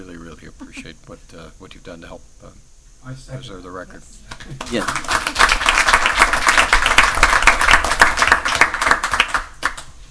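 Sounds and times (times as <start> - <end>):
speech: 0.4 - 7.4
audience applause: 4.5 - 9.9.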